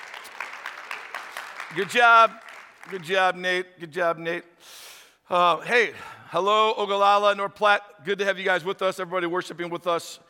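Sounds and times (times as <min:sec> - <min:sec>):
audience applause: 0:00.0 - 0:03.2
speech: 0:01.7 - 0:10.2.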